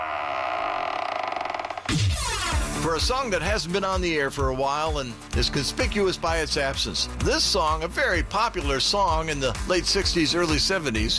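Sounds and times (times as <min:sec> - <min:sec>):
heavy vault door creaking open: 0:00.0 - 0:02.7
speech: 0:01.9 - 0:11.1.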